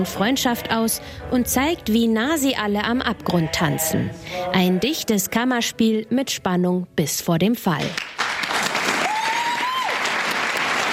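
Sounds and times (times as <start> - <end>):
speech: 0.0 - 8.2
theatre audience applause at a premiere: 8.0 - 10.9.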